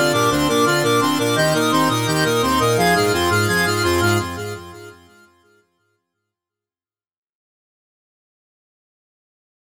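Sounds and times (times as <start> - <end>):
170 BPM organ playing: 0.0 - 5.2.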